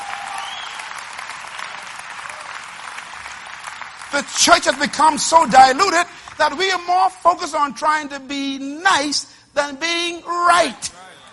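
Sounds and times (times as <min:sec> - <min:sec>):
audience applause: 0:00.0 - 0:06.4
speech: 0:04.1 - 0:11.0.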